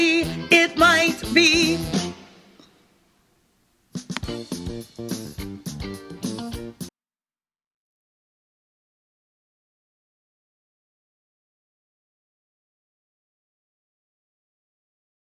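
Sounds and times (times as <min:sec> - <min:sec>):
tenor singing: 0:00.0 - 0:02.2.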